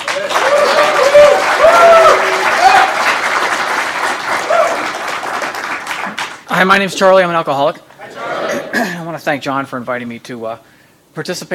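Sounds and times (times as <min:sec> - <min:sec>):
audience at a recovery meeting applauding a guest speaker: 0:00.0 - 0:06.6
speech: 0:06.6 - 0:07.8, 0:08.8 - 0:11.5.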